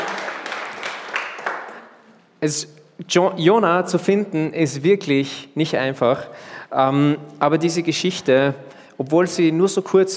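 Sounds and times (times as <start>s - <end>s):
audience applause: 0.0s - 1.9s
speech: 2.4s - 10.1s.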